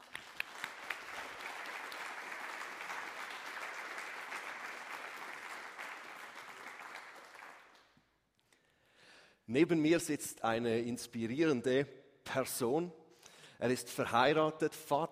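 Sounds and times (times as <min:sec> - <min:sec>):
audience applause: 0:00.0 - 0:07.8
speech: 0:09.5 - 0:13.0, 0:13.6 - 0:15.0.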